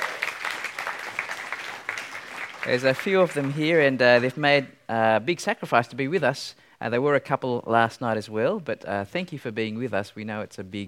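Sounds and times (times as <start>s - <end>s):
audience applause: 0.0s - 3.8s
speech: 2.6s - 10.8s.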